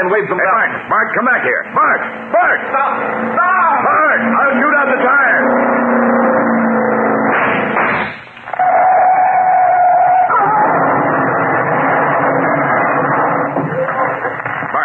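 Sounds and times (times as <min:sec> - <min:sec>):
speech: 0:00.0 - 0:05.8
speeding car engine roaring: 0:00.0 - 0:14.8
high whining tone: 0:01.0 - 0:14.4
speeding car crashing and overturning: 0:05.4 - 0:13.8.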